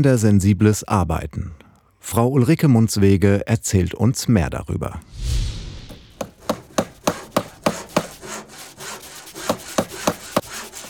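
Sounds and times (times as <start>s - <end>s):
speech: 0.0s - 5.6s
woodworking in a wood workshop: 5.9s - 10.8s.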